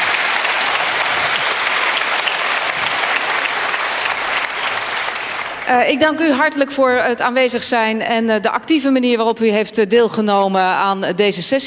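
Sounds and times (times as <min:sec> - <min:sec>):
audience applause: 0:00.0 - 0:06.2
speech: 0:05.7 - 0:11.6.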